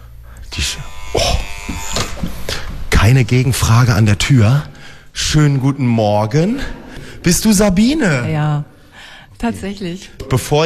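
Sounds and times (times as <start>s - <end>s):
doorbell buzzing: 0.6s - 2.3s
speech: 3.1s - 8.7s, 9.4s - 10.6s.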